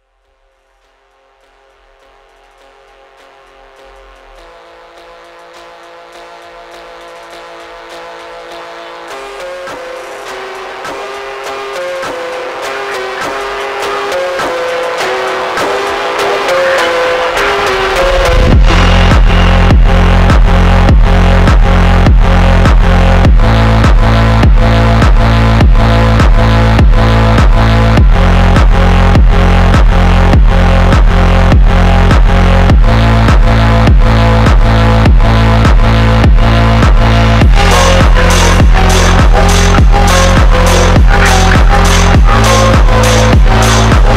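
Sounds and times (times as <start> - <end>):
slowed gym phonk music: 0.0 - 44.1.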